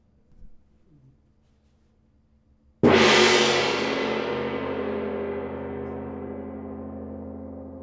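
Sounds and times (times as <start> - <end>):
gong vibration transient: 2.9 - 7.8.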